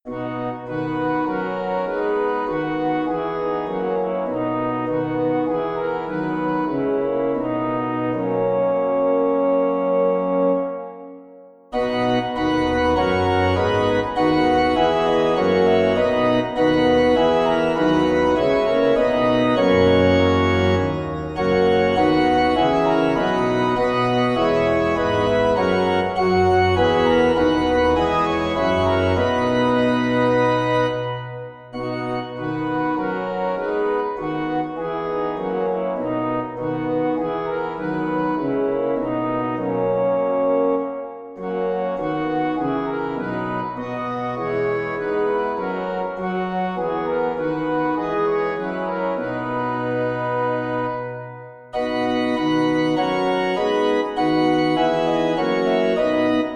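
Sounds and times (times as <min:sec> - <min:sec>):
organ: 0:00.1 - 0:56.5.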